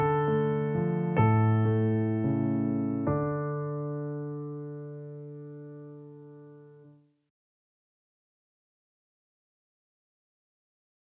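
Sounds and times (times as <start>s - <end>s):
requiem mass piece on piano: 0.0s - 7.0s.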